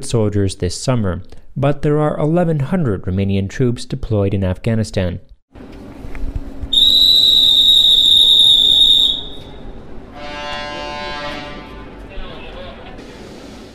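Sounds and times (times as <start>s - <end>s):
speech: 0.0s - 5.8s
Bucharest Central train station ambience: 5.6s - 13.7s
whistle in Bucharest Central train station: 6.7s - 9.6s.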